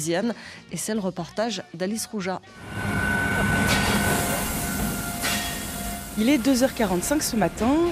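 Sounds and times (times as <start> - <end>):
speech: 0.0 - 2.9, 6.2 - 7.9
high whine: 2.5 - 7.6
freight train of twelve refrigerated wagons arriving at Rungis market: 2.6 - 7.9.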